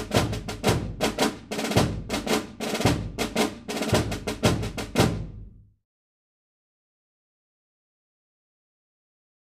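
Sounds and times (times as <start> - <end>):
drum cadence: 0.0 - 5.6.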